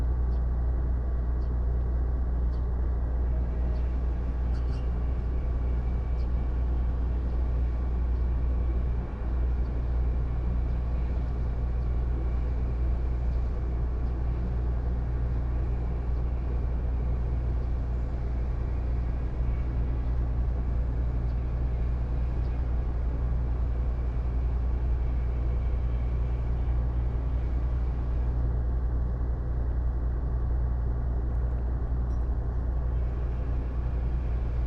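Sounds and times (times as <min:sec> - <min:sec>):
industrial complex ambience: 0:00.0 - 0:34.6.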